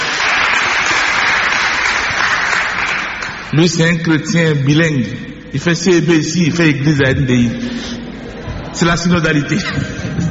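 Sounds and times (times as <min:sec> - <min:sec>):
audience applause: 0:00.0 - 0:03.5
speech: 0:03.6 - 0:08.0, 0:08.8 - 0:10.1.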